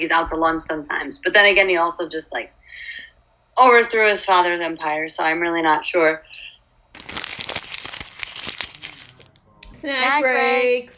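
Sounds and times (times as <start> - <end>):
speech: 0.0 - 2.9, 3.6 - 6.4, 9.8 - 10.9
bag of kettle cooked chips crinkling: 7.0 - 9.4.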